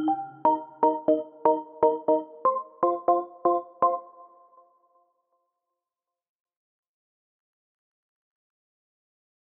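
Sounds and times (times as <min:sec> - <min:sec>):
electro music: 0:00.0 - 0:04.3.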